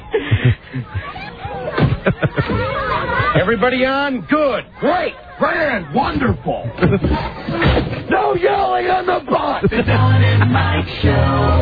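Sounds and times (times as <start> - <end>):
laughter: 0.0 - 3.9, 4.5 - 7.8, 9.1 - 11.6
speech: 0.5 - 1.2, 2.0 - 11.6
passengers yelling on a bus: 1.0 - 9.7.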